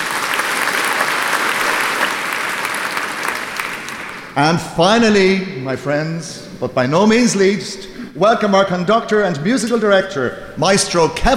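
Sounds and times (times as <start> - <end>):
audience applause: 0.0 - 4.4
speech: 4.4 - 11.3.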